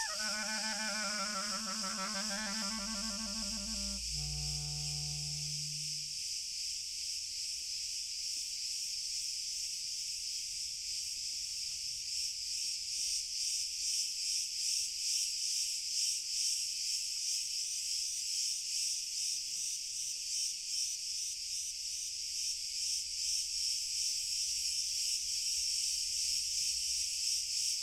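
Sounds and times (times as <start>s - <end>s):
cricket chorus: 0.0s - 27.8s.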